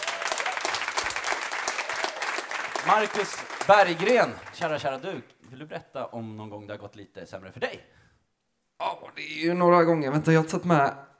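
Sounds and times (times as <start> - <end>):
audience applause at a Swedish stand-up comedy show: 0.0 - 5.2
speech: 2.8 - 8.0, 9.2 - 11.1.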